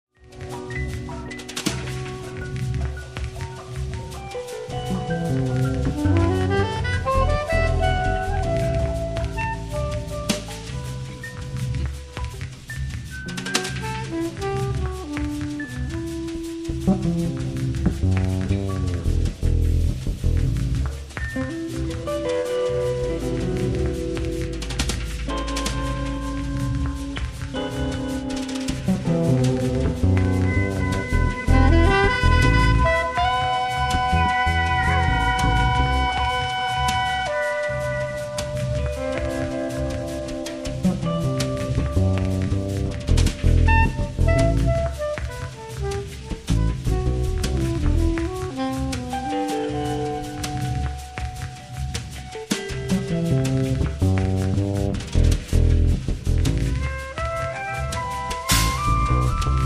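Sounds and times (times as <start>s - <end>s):
string remix music: 0.1s - 59.6s.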